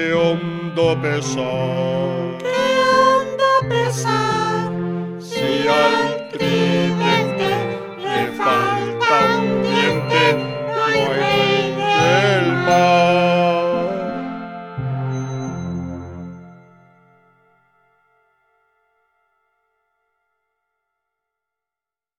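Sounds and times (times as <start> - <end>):
person singing a song: 0.0 - 14.6.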